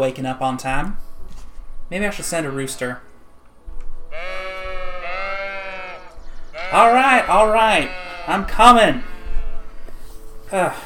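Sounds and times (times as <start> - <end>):
speech: 0.0 - 1.0, 1.9 - 3.1, 6.7 - 9.1, 10.5 - 10.8
agitated sheep bleating: 4.1 - 9.9.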